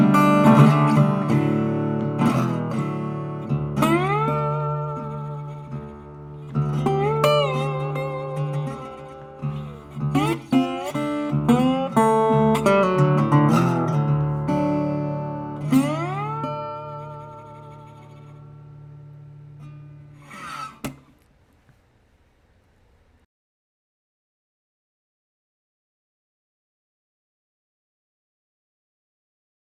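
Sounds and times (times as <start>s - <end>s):
National M1 Tricone Cutaway wood bodied resonator guitar: 0.0s - 21.3s.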